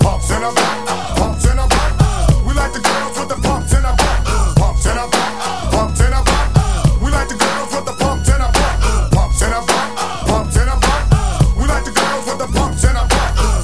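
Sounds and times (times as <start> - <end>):
music: 0.0 - 13.6.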